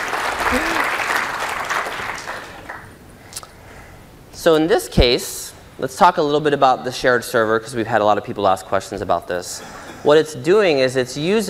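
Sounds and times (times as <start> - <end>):
applause: 0.0 - 3.0
speech: 0.5 - 0.8, 4.4 - 11.4.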